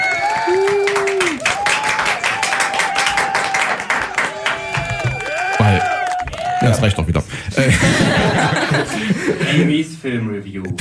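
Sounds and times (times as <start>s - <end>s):
applause button sound effect: 0.0s - 6.6s
laughter: 6.4s - 9.9s
speech: 6.7s - 10.8s.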